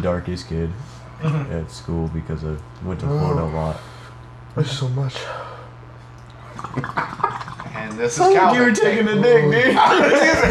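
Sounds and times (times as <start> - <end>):
speech: 0.0 - 4.0, 4.6 - 5.5, 6.7 - 10.5
steady low hum: 0.0 - 10.5
bubbling water: 6.3 - 8.3
laughter: 8.9 - 10.5.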